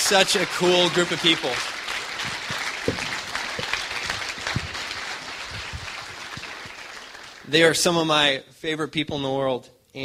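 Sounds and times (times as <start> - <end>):
audience applause: 0.0 - 7.6
speech: 0.1 - 3.1, 7.5 - 10.0.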